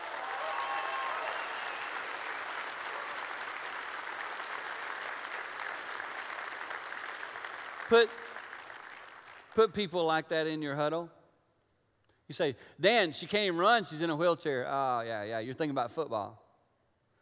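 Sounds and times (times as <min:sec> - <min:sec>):
large crowd clapping and cheering: 0:00.0 - 0:09.9
speech: 0:07.9 - 0:08.3, 0:09.6 - 0:11.2, 0:12.3 - 0:16.4.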